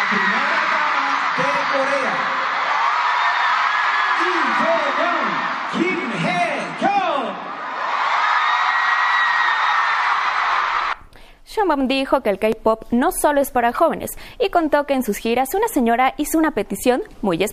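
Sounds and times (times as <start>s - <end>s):
stadium crowd ovation: 0.0s - 11.0s
whoops and yells: 0.0s - 11.0s
speech: 11.7s - 17.5s.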